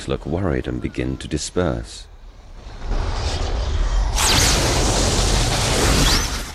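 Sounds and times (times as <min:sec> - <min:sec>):
speech: 0:00.0 - 0:02.1
low rumble: 0:02.1 - 0:06.5
lightning bolt striking a tower: 0:02.5 - 0:06.5
roaring crashing noise of a tower being destroyed: 0:02.5 - 0:06.5.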